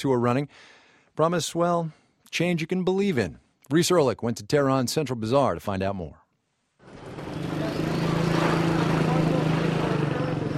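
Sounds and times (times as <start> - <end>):
speech: 0.0 - 6.2
small motorcycles buzzing through narrow alleyways: 6.8 - 10.5.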